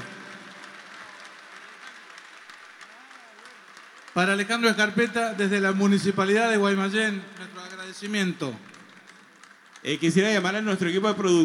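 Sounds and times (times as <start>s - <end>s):
audience applause: 0.0s - 11.4s
speech: 4.2s - 8.8s, 9.8s - 11.4s.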